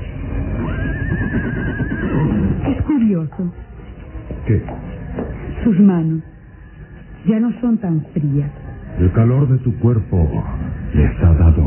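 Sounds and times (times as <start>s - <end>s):
horse neighing on a moonlit night: 0.3s - 2.9s
speech: 3.0s - 3.7s, 4.5s - 4.9s, 5.6s - 6.3s, 7.2s - 11.6s.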